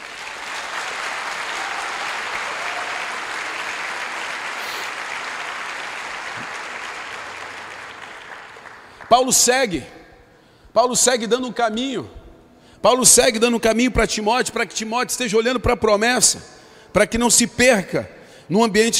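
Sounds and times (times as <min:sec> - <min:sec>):
audience applauding: 0:00.0 - 0:09.5
speech: 0:09.1 - 0:10.0, 0:10.8 - 0:12.2, 0:12.8 - 0:18.9.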